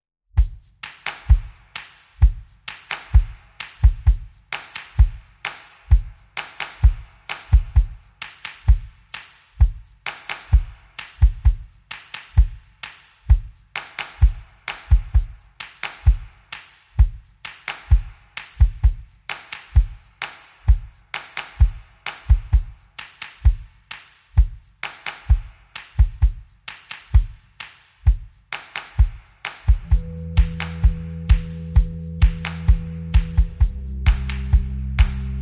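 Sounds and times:
drums: 0.3 - 22.8, 23.4 - 35.3
bass: 29.8 - 35.3.

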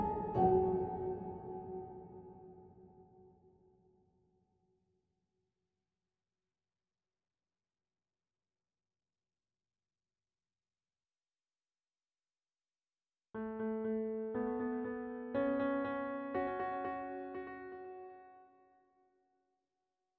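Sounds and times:
piano march with effects: 0.0 - 2.8, 13.4 - 18.6.

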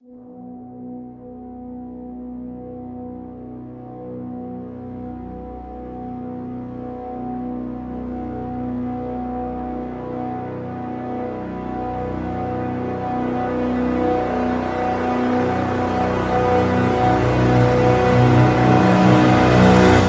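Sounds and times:
full brass swell crescendo: 9.1 - 20.0.

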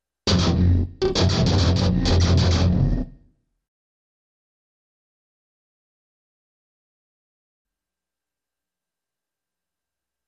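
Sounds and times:
solo guitar riff: 0.3 - 3.2.

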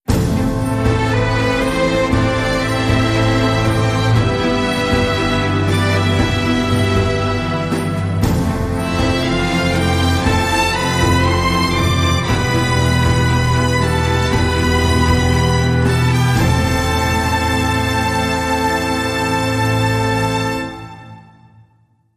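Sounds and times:
epic action music: 0.0 - 21.7.

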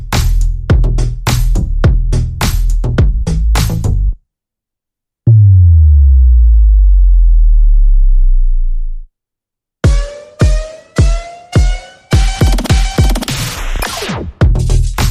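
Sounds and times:
drums: 0.0 - 4.0, 9.8 - 15.1
bass: 0.0 - 4.2, 5.3 - 9.1, 11.6 - 15.1.

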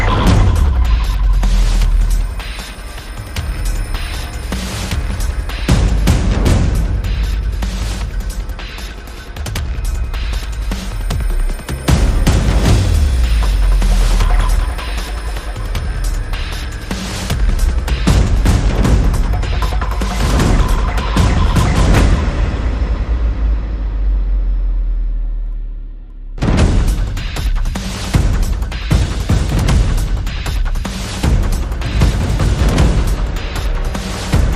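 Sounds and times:
sound effects: 0.0 - 6.5, 10.7 - 25.3
percussion pulses: 0.0 - 34.5.

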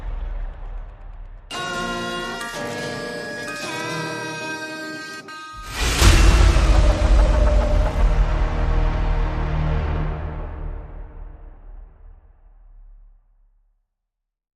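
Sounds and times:
horror version of a nursery rhyme: 1.5 - 11.4.

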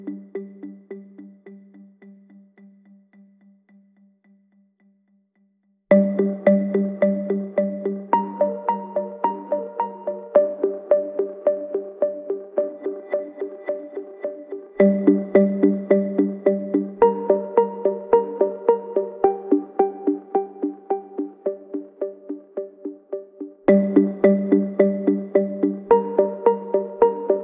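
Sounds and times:
quiet lead motif: 5.9 - 27.4.

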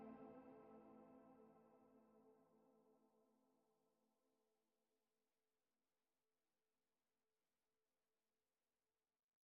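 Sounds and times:
middle strings: 0.0 - 1.8.

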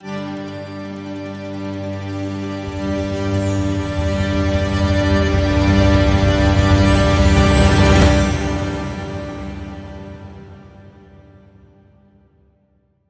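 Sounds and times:
celtic music: 0.0 - 11.7.

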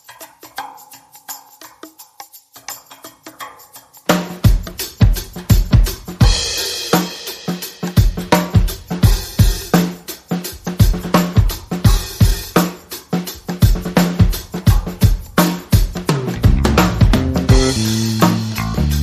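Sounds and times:
drums: 0.0 - 19.0
bass: 16.0 - 19.0.

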